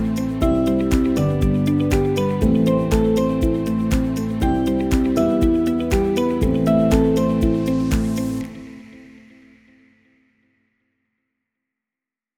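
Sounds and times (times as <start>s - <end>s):
light corporate music: 0.0s - 9.6s.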